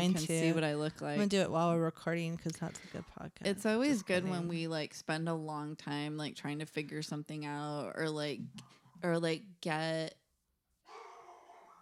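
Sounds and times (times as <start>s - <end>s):
speech: 0.0s - 10.2s
dogs barking: 10.9s - 11.8s.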